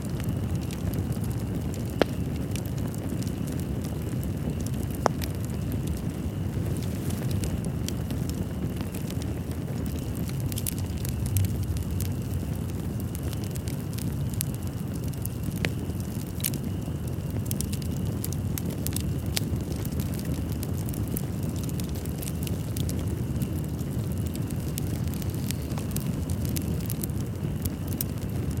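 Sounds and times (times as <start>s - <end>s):
campfire crackling and popping: 0.0s - 28.5s
campfire roaring: 0.0s - 28.5s.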